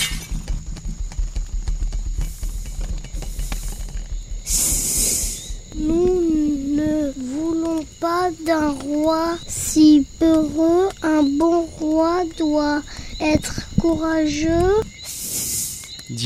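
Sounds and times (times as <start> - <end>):
crown breaking and shattering: 0.0 - 0.5
rapid steady thudding: 0.0 - 16.1
speech: 8.3 - 14.9.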